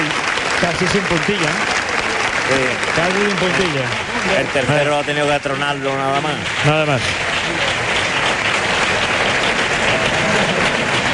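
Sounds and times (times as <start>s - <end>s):
bullring crowd ovation: 0.0s - 11.1s
speech: 0.8s - 1.8s, 2.5s - 7.3s.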